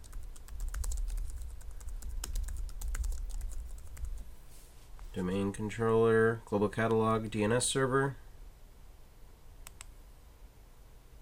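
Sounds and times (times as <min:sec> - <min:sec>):
typing a password on a computer keyboard during server setup: 0:00.0 - 0:04.2
low steady hum: 0:00.0 - 0:11.2
speech: 0:05.2 - 0:08.2.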